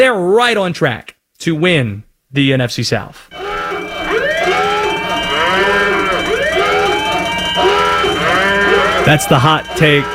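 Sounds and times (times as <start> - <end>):
speech: 0.0 - 3.4, 9.0 - 10.1
overheating alarm siren sound effect: 3.3 - 10.1.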